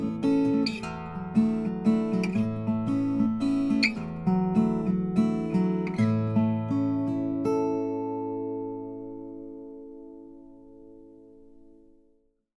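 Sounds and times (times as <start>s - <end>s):
deluxe mahogany guitar: 0.0s - 12.3s.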